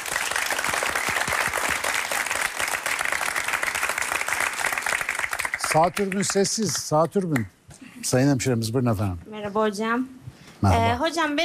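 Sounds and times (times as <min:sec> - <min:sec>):
applause: 0:00.0 - 0:07.5
speech: 0:05.7 - 0:11.4.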